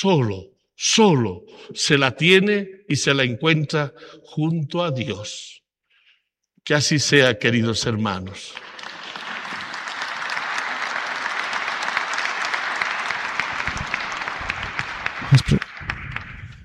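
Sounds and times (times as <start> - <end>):
speech: 0.0 - 5.6, 6.6 - 9.0
audience applause: 8.5 - 16.6.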